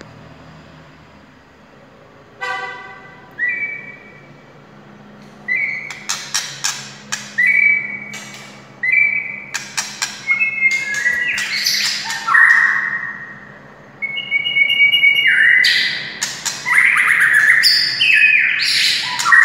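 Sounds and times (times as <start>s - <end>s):
white-rumped shama song: 3.4s - 4.3s, 5.4s - 19.4s.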